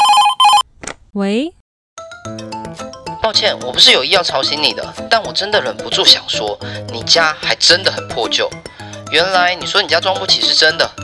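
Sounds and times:
cordless telephone handset ringing on a desk: 0.0 - 0.7
speech: 1.2 - 1.6, 3.3 - 11.0.

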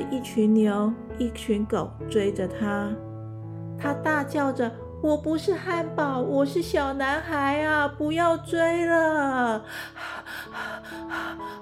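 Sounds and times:
speech: 0.2 - 3.1, 3.8 - 11.5
person acting out out-of-breath panting: 9.7 - 11.5.

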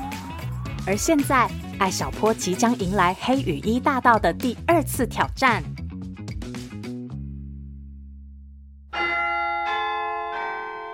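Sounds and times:
speech: 0.8 - 5.7
school bell chime for end of class: 8.9 - 10.9.

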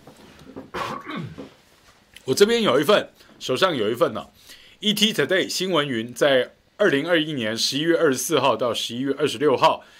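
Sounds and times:
person coughing: 0.7 - 1.6
speech: 2.3 - 9.9.

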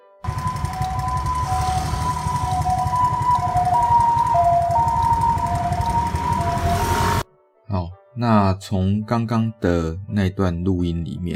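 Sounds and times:
ambulance siren approaching and receding with Doppler effect: 0.3 - 7.2
speech: 8.2 - 11.3.

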